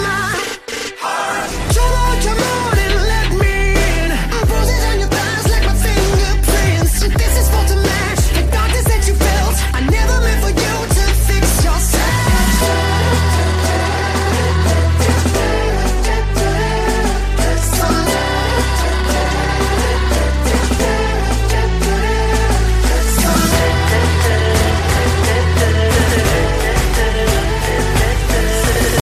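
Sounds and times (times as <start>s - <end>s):
trap beat: 0.0s - 29.0s.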